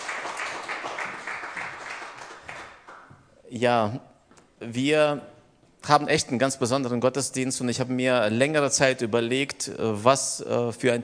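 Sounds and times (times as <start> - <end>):
audience applause: 0.0 - 3.1
speech: 3.5 - 11.0.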